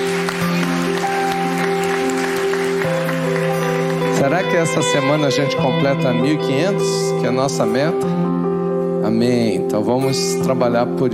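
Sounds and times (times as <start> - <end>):
audience applause: 0.0 - 5.2
sustained keyboard chords: 0.0 - 11.1
speech: 4.2 - 8.5, 9.1 - 11.1.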